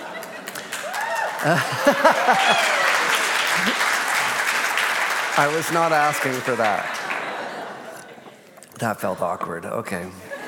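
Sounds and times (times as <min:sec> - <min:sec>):
laughter: 0:00.0 - 0:04.6, 0:05.4 - 0:10.4
audience clapping: 0:00.0 - 0:08.1
speech: 0:01.4 - 0:02.9, 0:03.6 - 0:03.9, 0:05.4 - 0:07.0, 0:08.8 - 0:10.3.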